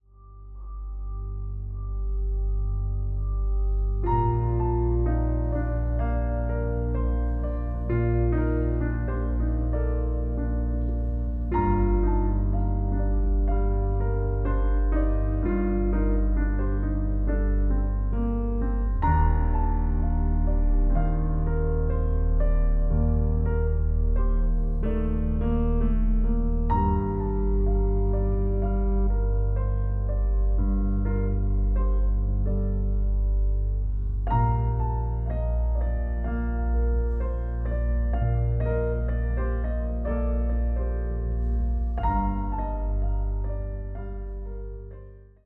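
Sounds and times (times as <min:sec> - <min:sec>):
piano: 0:00.0 - 0:45.4.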